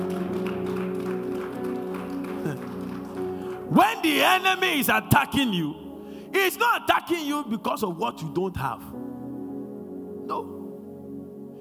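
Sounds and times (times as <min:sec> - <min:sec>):
crowd clapping: 0:00.0 - 0:04.5
keyboard chords: 0:00.0 - 0:11.5
speech: 0:03.7 - 0:05.8, 0:06.4 - 0:08.9.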